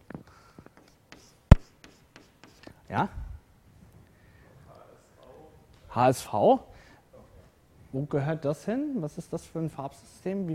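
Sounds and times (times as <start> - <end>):
marker writing on a board during a lesson on colour systems: 0.6 - 2.8
speech: 2.9 - 3.2, 6.0 - 6.7, 7.9 - 10.5.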